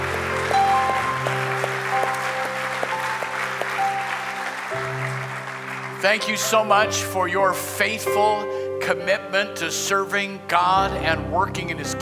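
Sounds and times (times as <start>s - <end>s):
audience clapping hands: 0.0s - 7.2s
speech: 6.0s - 12.0s.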